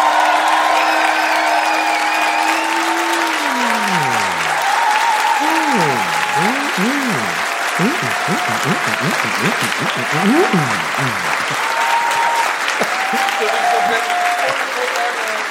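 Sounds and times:
audience applause: 0:00.0 - 0:15.4
laughter: 0:02.4 - 0:04.6, 0:05.4 - 0:11.6
speech: 0:08.0 - 0:11.6, 0:13.1 - 0:15.4.

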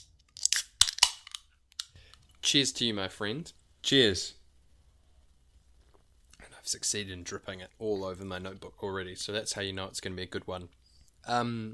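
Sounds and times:
beer cans snapping open: 0:00.0 - 0:01.9
speech: 0:02.5 - 0:04.4, 0:06.7 - 0:11.7.

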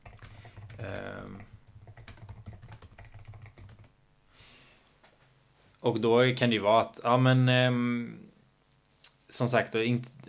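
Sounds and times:
fast quiet typing on a computer keyboard: 0:00.0 - 0:03.9
speech: 0:05.8 - 0:08.2, 0:09.3 - 0:10.2.

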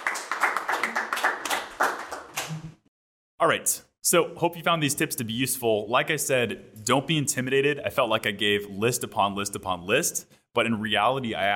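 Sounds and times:
people clapping: 0:00.0 - 0:02.8
speech: 0:03.4 - 0:11.5.

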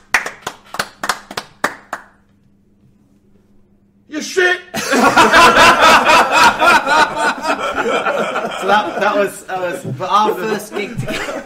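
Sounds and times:
single person clapping: 0:00.0 - 0:02.3
speech: 0:04.2 - 0:05.6, 0:07.8 - 0:11.4
laughter: 0:04.8 - 0:11.4.

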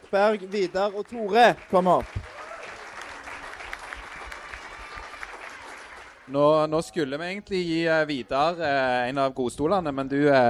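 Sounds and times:
audience applause: 0:00.0 - 0:06.4
speech: 0:00.1 - 0:02.2, 0:06.3 - 0:10.4.

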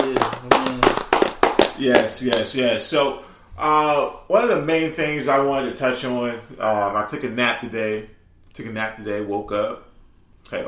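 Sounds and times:
round of applause: 0:00.0 - 0:02.5
speech: 0:01.8 - 0:09.9, 0:10.5 - 0:10.6.

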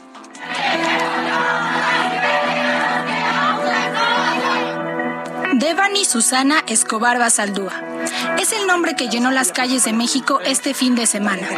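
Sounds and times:
feminist protest crowd shouting in streets: 0:00.4 - 0:04.8
speech: 0:05.7 - 0:11.5.

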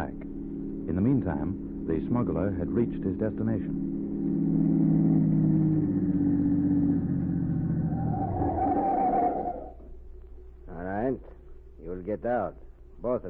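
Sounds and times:
car engine driving: 0:00.0 - 0:09.9
speech: 0:00.9 - 0:04.4, 0:12.2 - 0:13.2.

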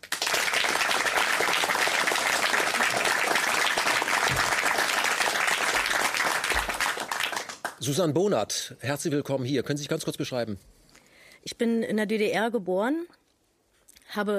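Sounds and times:
audience applause: 0:00.0 - 0:07.9
speech: 0:07.8 - 0:10.8, 0:11.4 - 0:13.2, 0:14.1 - 0:14.3.

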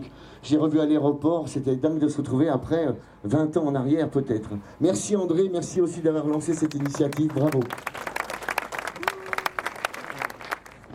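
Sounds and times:
speech: 0:00.0 - 0:08.1
audience applause: 0:06.3 - 0:10.9.

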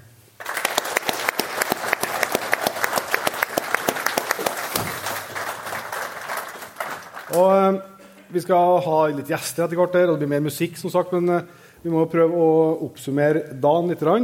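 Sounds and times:
big round of applause from a crowd: 0:00.4 - 0:07.6
speech: 0:07.3 - 0:14.2.

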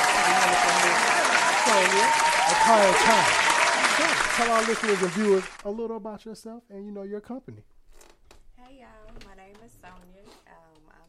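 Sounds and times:
audience applause: 0:00.0 - 0:05.6
speech: 0:01.8 - 0:03.4, 0:04.0 - 0:07.7.

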